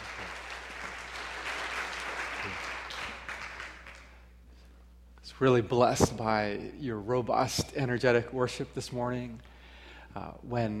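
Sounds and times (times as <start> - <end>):
church congregation clapping to welcome a guest speaker: 0.0 - 4.2
speech: 5.4 - 9.5, 10.1 - 10.7.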